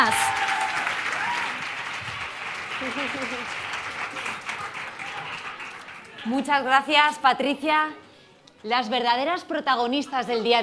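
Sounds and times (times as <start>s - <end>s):
audience applause: 0.0s - 6.3s
speech: 6.2s - 8.0s, 8.6s - 10.6s.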